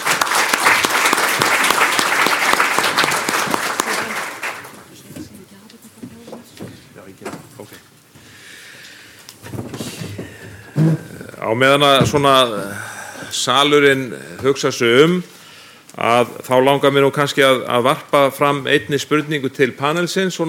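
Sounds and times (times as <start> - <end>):
audience applause at a panel discussion event: 0.0 - 5.0
speech: 10.8 - 12.8, 13.4 - 15.4, 16.0 - 20.4.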